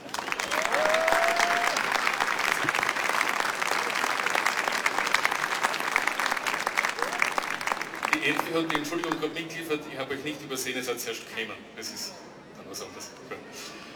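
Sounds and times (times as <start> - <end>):
audience applause: 0.0 - 9.3
speech: 8.3 - 13.2.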